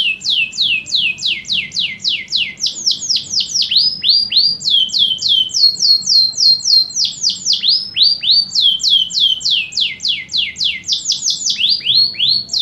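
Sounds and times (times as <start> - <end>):
canary song: 0.0 - 12.6.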